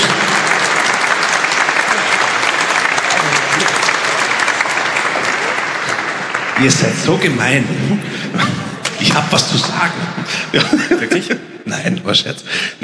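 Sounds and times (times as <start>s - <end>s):
audience applause: 0.0s - 10.1s
speech: 6.6s - 12.8s
laughter: 7.6s - 12.8s.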